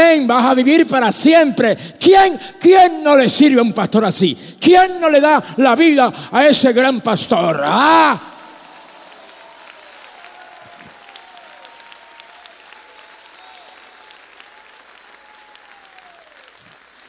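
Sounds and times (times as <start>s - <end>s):
speech: 0.1s - 8.3s
audience applause: 7.6s - 17.0s.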